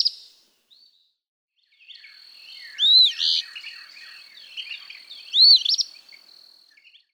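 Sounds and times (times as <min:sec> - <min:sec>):
Eastern Phoebe calling: 0:02.0 - 0:06.5.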